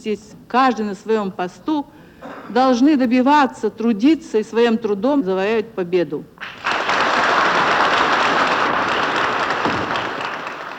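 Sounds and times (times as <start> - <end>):
speech: 0.0 - 6.5
audience applauding in a hall: 6.4 - 10.7.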